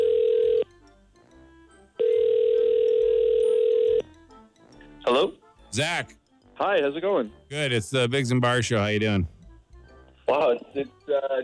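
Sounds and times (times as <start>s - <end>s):
telephone ringing during outgoing call: 0.0s - 0.7s, 2.0s - 4.1s
speech: 5.2s - 9.4s, 10.3s - 11.4s.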